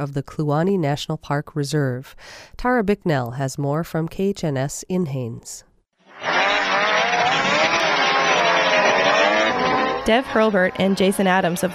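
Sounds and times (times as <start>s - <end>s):
speech: 0.0s - 6.3s, 10.1s - 11.7s
snowmobile engines in a 145-mile snow machine race near Kluane National Park Reserve: 6.1s - 11.7s.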